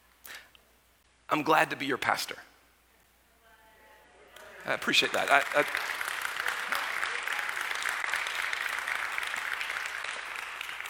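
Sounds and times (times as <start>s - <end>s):
speech: 1.3s - 2.5s, 4.7s - 5.9s
audience applause: 4.4s - 10.8s.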